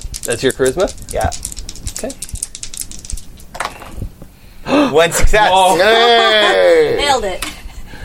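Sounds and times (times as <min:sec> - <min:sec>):
dice rolling across a hard surface: 0:00.0 - 0:04.0
speech: 0:00.2 - 0:02.3, 0:04.7 - 0:07.5.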